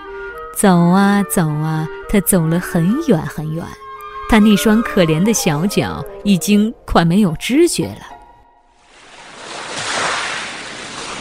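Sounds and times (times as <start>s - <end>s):
speech: 0.6s - 8.1s
sea waves: 8.8s - 11.1s.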